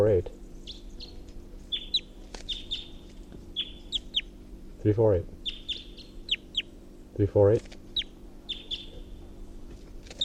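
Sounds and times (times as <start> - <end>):
speech: 0.0 - 0.8, 4.8 - 5.4, 7.2 - 7.8
low steady hum: 0.0 - 10.2
wild bird calling from a tall pine: 0.4 - 4.4, 5.4 - 6.8, 7.9 - 9.3.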